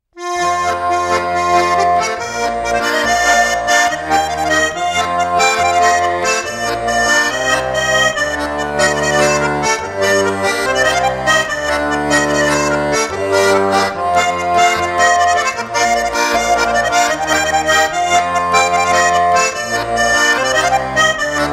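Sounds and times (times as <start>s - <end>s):
folk tune on Petersburg garmon: 0.2s - 21.5s.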